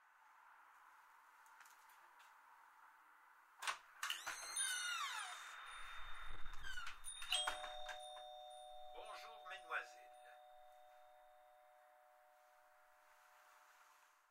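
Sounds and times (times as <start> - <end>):
shop door bell: 4.2 - 13.6.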